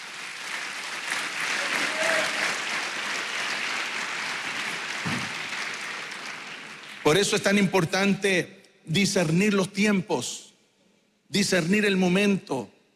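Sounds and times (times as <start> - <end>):
audience applause: 0.0 - 7.1
speech: 7.1 - 10.5, 11.3 - 12.8.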